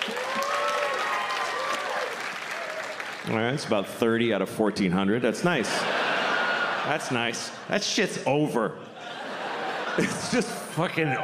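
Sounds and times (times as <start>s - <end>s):
audience applause: 0.0s - 3.6s
speech: 3.2s - 6.0s, 6.9s - 8.8s, 10.0s - 11.2s
laughter: 5.5s - 7.7s, 8.8s - 11.2s.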